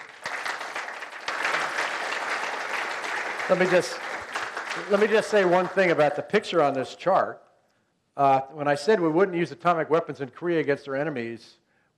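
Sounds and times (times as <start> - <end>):
audience applause after presentation: 0.0 - 6.3
speech: 3.5 - 4.1, 4.8 - 7.4, 8.2 - 11.6.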